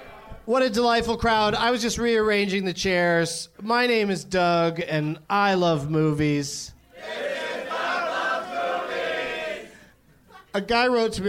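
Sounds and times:
speech: 0.5s - 7.2s, 10.6s - 11.2s
live comedy show audience shouting in unison: 7.0s - 9.8s.

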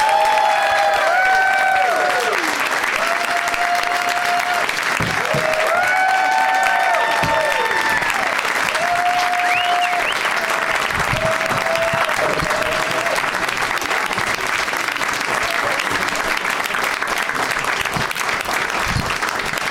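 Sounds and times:
whoops and cheers from a studio audience: 0.0s - 13.2s
loud sustained applause from a large studio audience: 0.0s - 19.6s.

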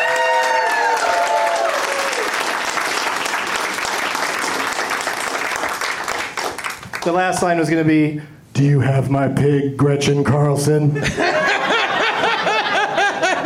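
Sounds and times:
audience clapping: 0.0s - 7.5s
speech: 7.0s - 11.4s
laughter: 11.0s - 13.4s.

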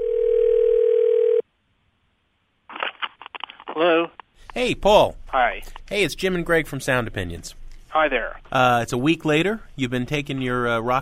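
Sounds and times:
telephone dial tone placing a call: 0.0s - 1.4s
speech: 3.8s - 11.0s.

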